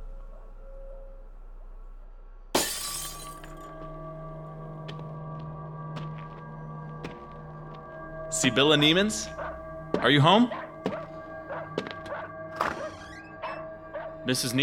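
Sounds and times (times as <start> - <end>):
low steady hum: 0.0 - 11.8
glass shards tinkling: 2.6 - 3.6
kitchen window pane being smashed: 2.6 - 3.7
speech: 8.4 - 9.4, 10.0 - 10.6, 14.3 - 14.6.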